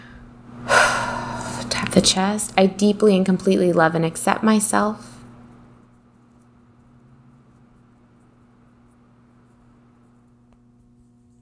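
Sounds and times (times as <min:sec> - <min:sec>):
deep inhale through the nose and mouth during an emotional tapping exercise: 0:00.0 - 0:01.9
speech: 0:01.8 - 0:05.1.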